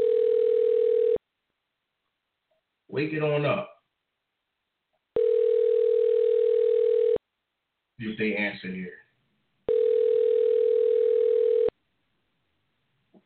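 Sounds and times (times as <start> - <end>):
telephone ringing: 0.0 - 1.2, 5.2 - 7.2, 9.7 - 11.7
speech: 3.0 - 3.7, 8.0 - 9.0.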